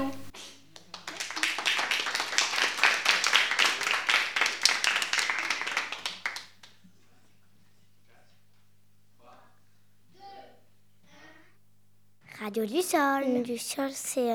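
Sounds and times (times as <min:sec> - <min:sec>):
audience clapping to encourage children: 0:00.6 - 0:06.9
speech: 0:12.5 - 0:14.3.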